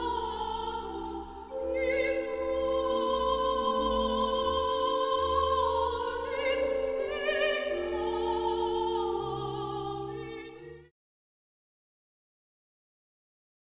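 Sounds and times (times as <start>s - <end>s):
soprano singing: 0.0s - 10.9s.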